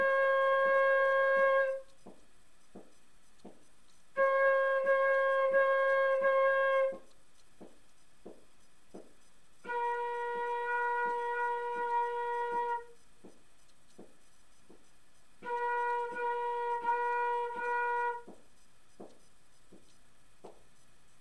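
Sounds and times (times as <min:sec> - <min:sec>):
flute tonguing: 0:00.0 - 0:20.0.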